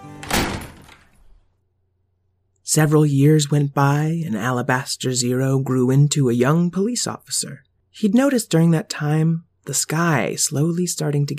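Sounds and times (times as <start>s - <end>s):
door swinging shut with a thump and rattle: 0.1s - 1.4s
speech: 2.7s - 11.3s.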